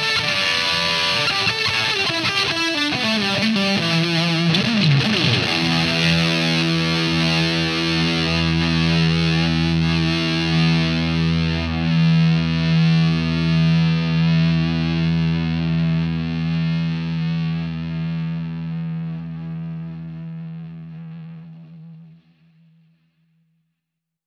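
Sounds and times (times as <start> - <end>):
solo through power boost with buffer in front: 0.0 - 22.8.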